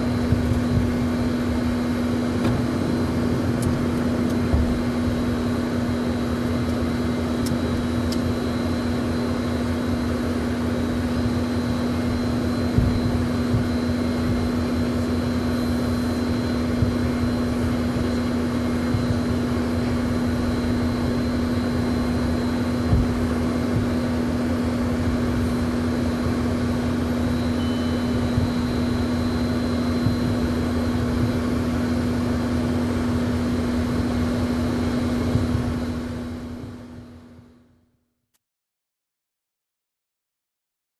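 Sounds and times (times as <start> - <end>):
aircraft cabin ambience during ground rolling: 0.0 - 37.6.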